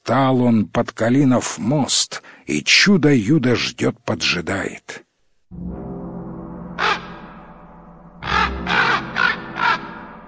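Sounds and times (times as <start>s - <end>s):
speech: 0.1s - 5.9s
crow cawing: 6.8s - 7.4s, 8.2s - 10.2s.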